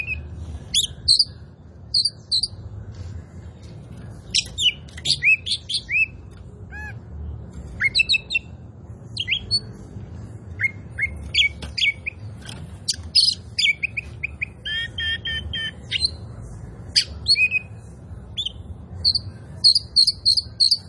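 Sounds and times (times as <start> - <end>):
Oriental magpie-robin song: 0.0 - 2.6, 4.3 - 7.1, 7.7 - 8.5, 9.1 - 9.7, 10.5 - 12.2, 12.8 - 16.2, 16.9 - 20.8.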